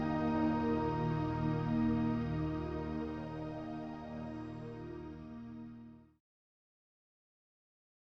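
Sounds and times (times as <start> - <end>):
relaxing spa music: 0.0 - 6.2.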